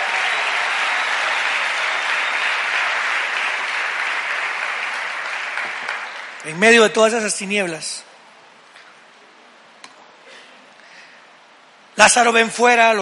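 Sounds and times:
audience applauding: 0.0s - 6.6s
speech: 6.4s - 8.1s, 12.0s - 13.0s.

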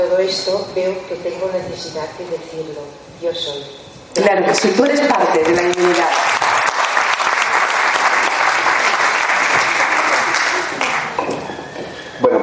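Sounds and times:
speech: 0.0s - 6.4s
audience applause: 5.4s - 11.2s.

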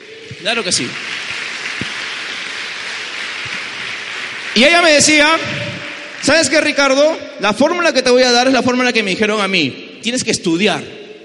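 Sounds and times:
crowd clapping: 0.0s - 7.2s
speech: 0.4s - 1.2s, 4.6s - 11.0s.

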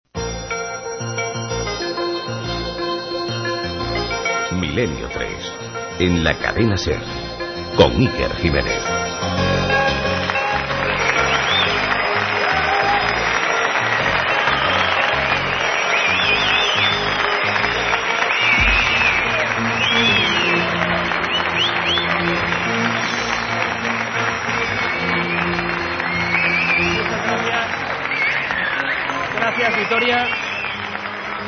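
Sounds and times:
audience applauding in a packed congress hall: 0.3s - 31.4s
speech: 4.8s - 7.2s, 7.8s - 9.5s
audience cheering: 9.7s - 31.4s.

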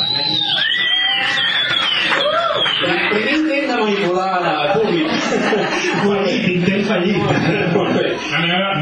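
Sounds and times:
high sliding cheers and whoops: 0.2s - 2.9s
audience applause: 0.6s - 3.4s
laughter: 1.8s - 8.7s.

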